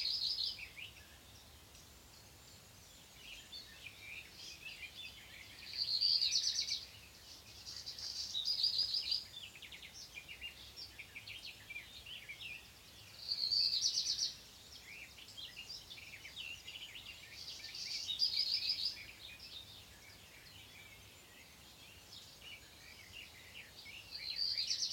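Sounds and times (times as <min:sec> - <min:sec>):
black redstart Phoenicurus ochruros singing: 0:00.0 - 0:24.9.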